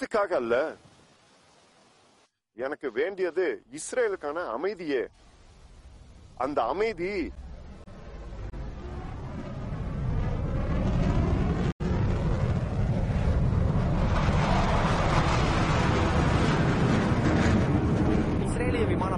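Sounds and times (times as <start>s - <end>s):
speech: 0.0s - 0.9s, 2.6s - 5.3s, 6.4s - 7.4s
airplanes flying overhead: 6.6s - 19.1s.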